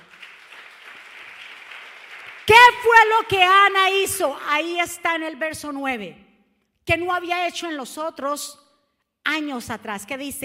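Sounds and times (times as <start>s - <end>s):
audience applauding loudly: 0.0s - 2.9s
speech: 3.0s - 6.2s, 6.9s - 8.6s, 9.3s - 10.4s.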